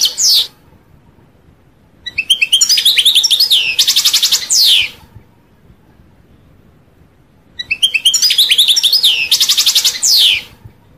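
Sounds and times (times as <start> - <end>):
European goldfinch song: 0.0 - 0.6, 2.0 - 5.2, 7.6 - 10.7.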